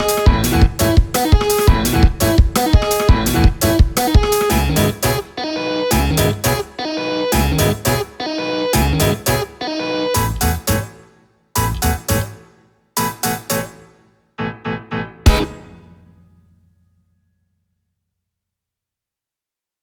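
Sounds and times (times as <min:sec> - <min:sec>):
off vocal instrumental music: 0:00.0 - 0:11.0, 0:11.6 - 0:12.4, 0:13.0 - 0:13.8, 0:14.4 - 0:16.7.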